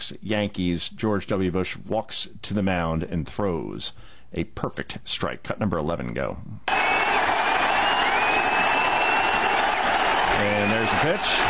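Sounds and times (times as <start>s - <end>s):
speech: 0.1s - 6.8s, 10.4s - 11.4s
packed baseball stadium crowd cheering and applauding: 6.7s - 11.4s.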